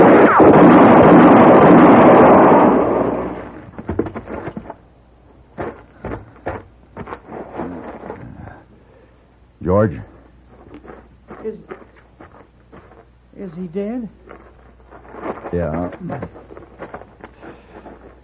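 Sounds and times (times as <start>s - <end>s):
gunshot: 0.0s - 4.1s.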